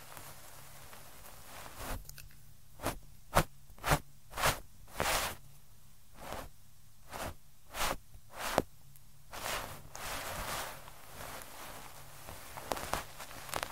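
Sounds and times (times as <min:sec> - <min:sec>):
soft continuous rubbing rustle: 0:00.0 - 0:02.0, 0:02.8 - 0:05.4, 0:06.2 - 0:06.5, 0:07.1 - 0:08.7, 0:09.3 - 0:13.7
short sharp scratchy ear cleaning strokes: 0:01.4 - 0:02.0, 0:02.8 - 0:05.4, 0:06.2 - 0:08.7, 0:09.3 - 0:13.7
crisp taps: 0:12.3 - 0:13.7.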